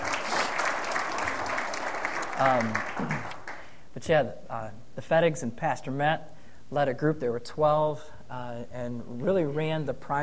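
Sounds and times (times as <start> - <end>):
audience applause: 0.0 - 3.6
speech: 2.4 - 3.4, 4.0 - 10.2.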